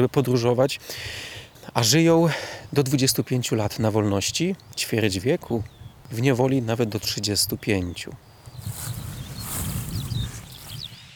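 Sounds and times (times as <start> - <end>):
speech: 0.0 - 8.9
skylark singing: 3.5 - 11.1.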